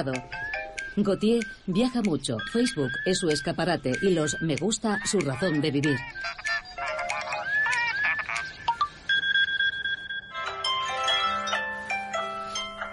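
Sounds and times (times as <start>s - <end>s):
speech: 0.0s - 0.4s, 1.0s - 6.6s
phone alarm ringing: 2.4s - 11.8s.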